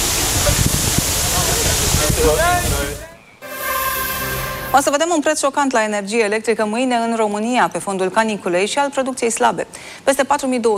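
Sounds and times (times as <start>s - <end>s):
water cannons spraying water on crowd: 0.0s - 4.7s
speech: 2.2s - 2.8s, 4.7s - 10.7s.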